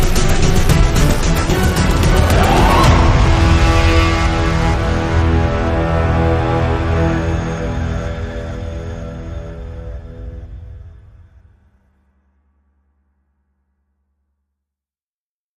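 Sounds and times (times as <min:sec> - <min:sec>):
percussion: 0:00.0 - 0:11.6.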